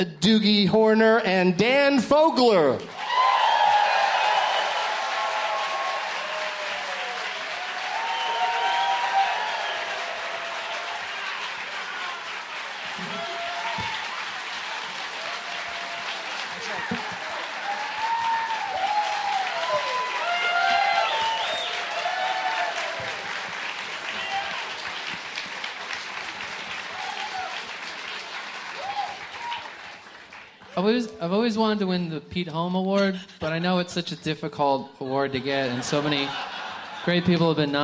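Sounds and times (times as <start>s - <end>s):
speech: 0.0s - 3.0s, 31.2s - 37.8s
audience applause welcoming guests onto a show: 2.8s - 30.8s
laughter: 12.8s - 13.6s, 16.3s - 17.6s, 35.3s - 37.8s.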